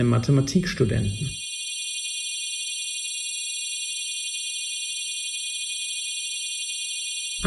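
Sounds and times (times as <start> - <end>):
speech: 0.0 - 1.4
beating interfering high sine tones: 0.0 - 1.5.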